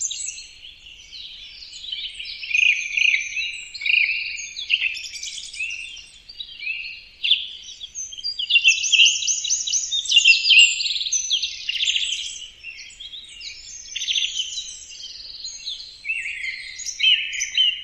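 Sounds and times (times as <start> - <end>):
bird singing high fluty whistled phrases: 0.0 - 17.8.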